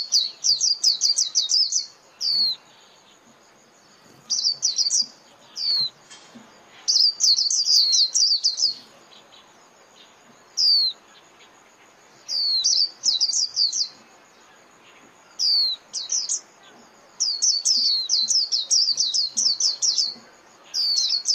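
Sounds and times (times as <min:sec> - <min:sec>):
white-eye high descending chirps: 0:00.0 - 0:03.2, 0:04.2 - 0:11.6, 0:12.2 - 0:14.0, 0:14.9 - 0:21.3
quiet hiss: 0:00.0 - 0:21.3.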